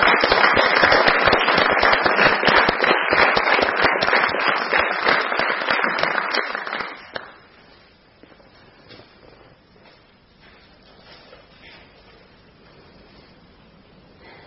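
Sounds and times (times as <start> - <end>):
round of applause: 0.0 - 7.5.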